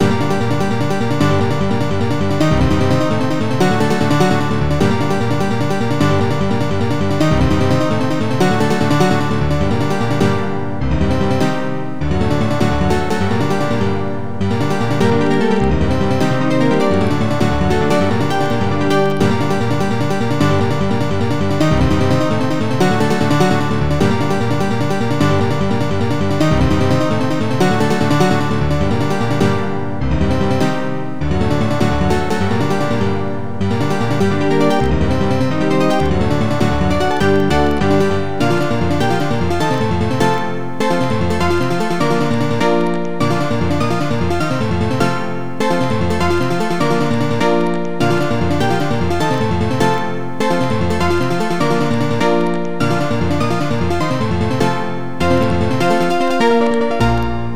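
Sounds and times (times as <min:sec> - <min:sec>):
piano: 0:00.0 - 0:57.5.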